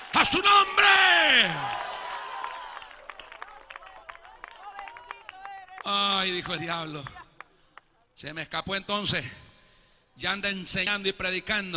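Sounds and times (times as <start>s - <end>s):
crowd applause: 0.0s - 7.9s
speech: 0.2s - 1.8s, 5.8s - 7.2s, 8.2s - 9.4s, 10.2s - 11.7s.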